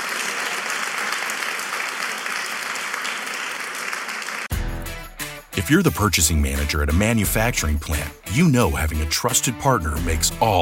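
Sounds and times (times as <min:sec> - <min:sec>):
crowd clapping: 0:00.0 - 0:04.6
speech: 0:05.6 - 0:10.6.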